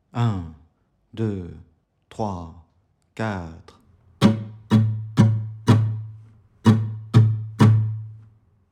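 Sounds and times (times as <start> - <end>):
musical exercise: 4.1 - 8.3.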